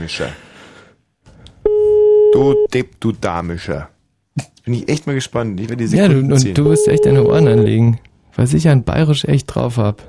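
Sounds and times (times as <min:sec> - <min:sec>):
speech: 0:00.0 - 0:00.5, 0:02.4 - 0:10.0
telephone line ringing tone: 0:06.7 - 0:07.7.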